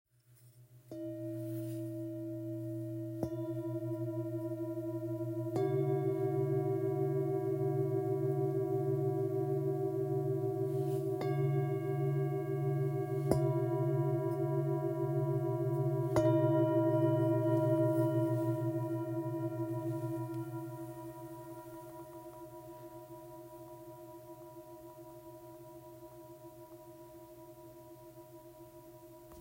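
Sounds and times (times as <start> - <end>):
Tibetan singing bowls: 0.5 - 29.3.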